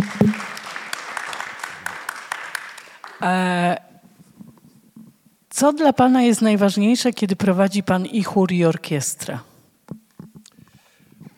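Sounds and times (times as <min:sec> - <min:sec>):
audience applause: 0:00.0 - 0:03.2
speech: 0:03.2 - 0:03.8, 0:05.6 - 0:09.5.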